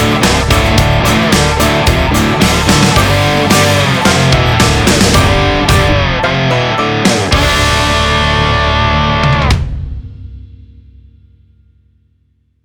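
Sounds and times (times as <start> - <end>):
power dirty cowboy rock music: 0.0 - 10.0.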